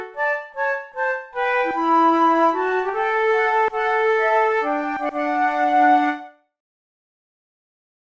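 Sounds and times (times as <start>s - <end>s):
flute playing in a classical trio: 0.0s - 6.4s.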